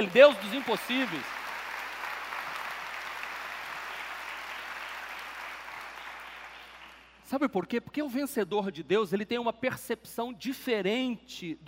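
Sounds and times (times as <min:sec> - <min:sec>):
speech: 0:00.0 - 0:01.4, 0:07.3 - 0:11.6
audience applause: 0:00.0 - 0:07.0.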